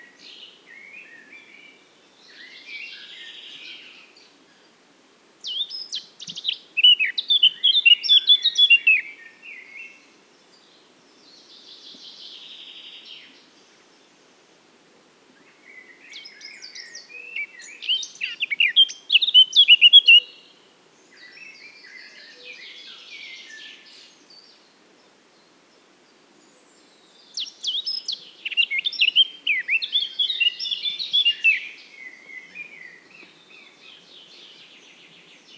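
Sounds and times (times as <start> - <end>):
Eurasian blackcap warbling song: 5.4 - 9.0, 16.2 - 20.3, 27.3 - 35.5.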